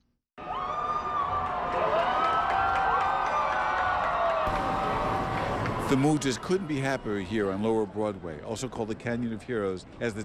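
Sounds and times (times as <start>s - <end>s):
parade crowd cheering: 0.4s - 8.4s
speech: 5.9s - 10.2s.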